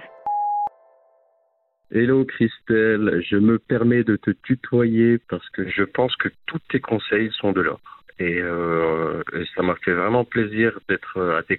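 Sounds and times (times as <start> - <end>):
electronic answering-machine beep: 0.2 - 0.7
speech: 1.9 - 11.5.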